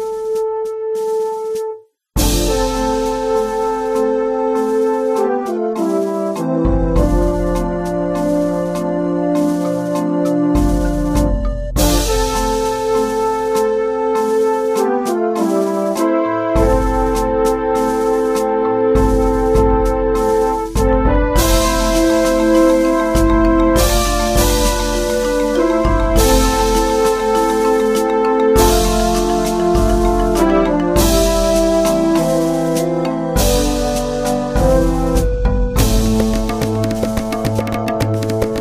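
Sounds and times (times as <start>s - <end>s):
fanfare: 0.0s - 38.5s.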